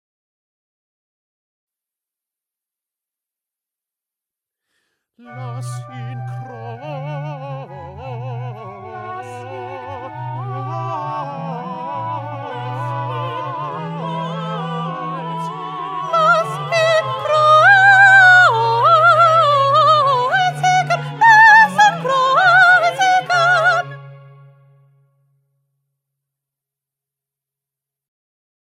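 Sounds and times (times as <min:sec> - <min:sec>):
soprano singing: 0:05.2 - 0:24.2.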